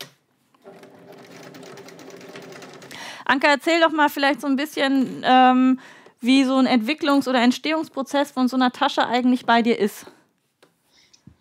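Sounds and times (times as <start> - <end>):
sewing machine running a straight stitch while a bag is sewn: 0.6 - 3.0
speech: 3.3 - 10.2.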